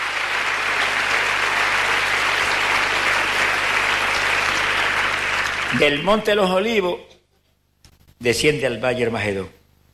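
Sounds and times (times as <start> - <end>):
audience applauding: 0.0 - 6.4
speech: 5.7 - 7.2, 8.2 - 9.6.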